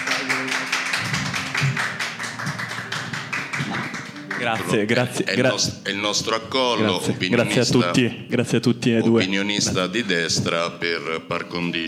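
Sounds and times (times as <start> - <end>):
applause: 0.0 - 5.0
speech: 4.4 - 11.8.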